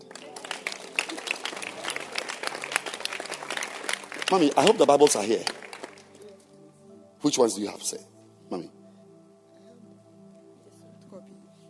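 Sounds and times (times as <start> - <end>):
audience clapping hands: 0.0 - 6.4
speech: 4.3 - 5.6, 7.2 - 8.8.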